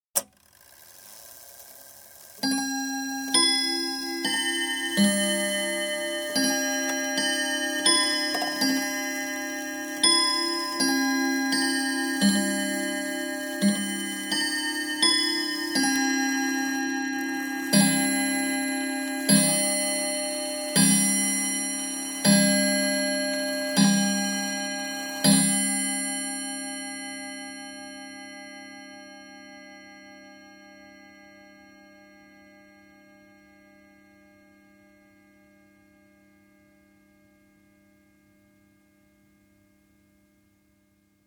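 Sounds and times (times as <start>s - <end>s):
domestic chiming clock striking six: 0.2s - 33.2s.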